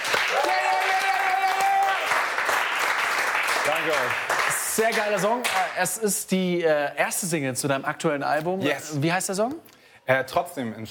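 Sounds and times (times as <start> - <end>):
crew clapping: 0.0 - 5.9
voices cheering: 0.1 - 2.4
speech: 3.7 - 10.8.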